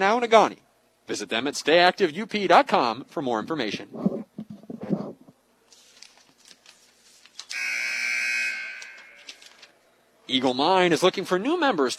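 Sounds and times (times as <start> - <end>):
speech: 0.0 - 4.1, 10.3 - 11.9
basketball game buzzer: 7.5 - 9.2.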